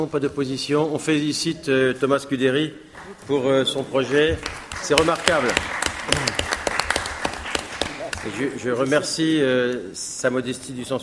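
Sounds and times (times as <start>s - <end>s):
speech: 0.0s - 6.4s, 8.2s - 11.0s
audience applause: 4.0s - 8.9s.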